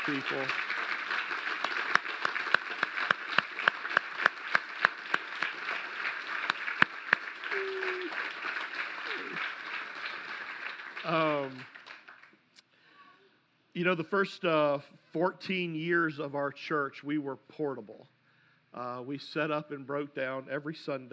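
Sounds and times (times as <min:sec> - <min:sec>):
speech: 0:00.0 - 0:00.7, 0:13.8 - 0:18.2, 0:18.8 - 0:21.1
audience applause: 0:00.0 - 0:12.4
whoops and whistle-like cheer: 0:07.5 - 0:08.3, 0:09.0 - 0:09.4.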